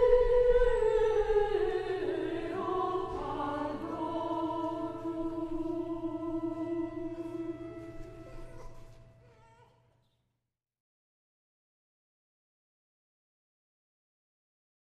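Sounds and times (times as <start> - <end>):
Dominican chant: 0.0 - 9.2.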